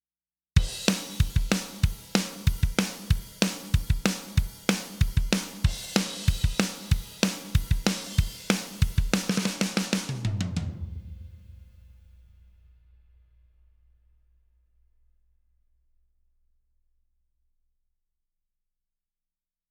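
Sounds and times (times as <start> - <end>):
drum: 0.6 - 12.1.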